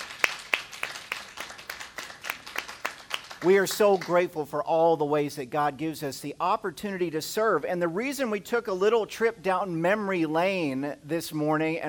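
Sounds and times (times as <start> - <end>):
audience applause: 0.0 - 4.1
speech: 3.4 - 11.8.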